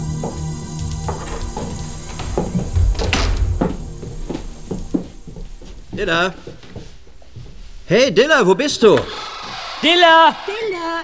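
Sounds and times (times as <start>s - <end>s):
footsteps stepping inside: 0.0s - 11.0s
door opening: 0.2s - 5.2s, 8.8s - 10.5s
speech: 6.0s - 6.6s, 7.9s - 10.6s.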